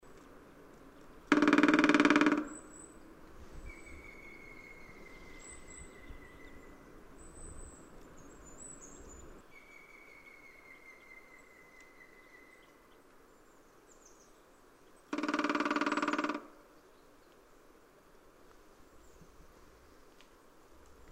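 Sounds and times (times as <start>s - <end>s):
grey-headed woodpecker drumming: 1.3s - 3.0s, 15.1s - 16.7s.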